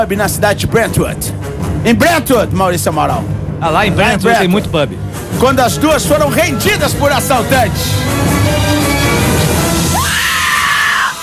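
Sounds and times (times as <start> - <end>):
speech: 0.0 - 8.8
women screaming: 9.9 - 11.2.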